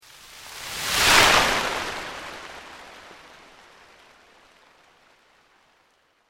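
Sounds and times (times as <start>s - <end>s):
slow organic sweep: 0.0s - 3.7s.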